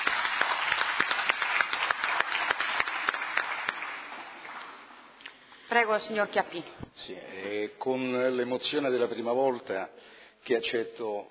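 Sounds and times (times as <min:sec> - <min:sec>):
group applauding: 0:00.0 - 0:05.2
speech: 0:05.8 - 0:11.2.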